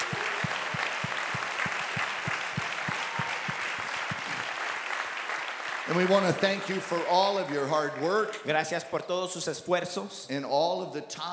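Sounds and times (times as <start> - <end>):
audience applause: 0.0 - 8.4
speech: 5.9 - 11.3.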